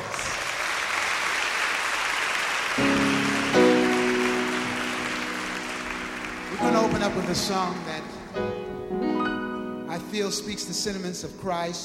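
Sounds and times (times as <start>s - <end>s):
audience applause: 0.0s - 8.1s
speech: 7.0s - 8.6s, 10.1s - 11.8s.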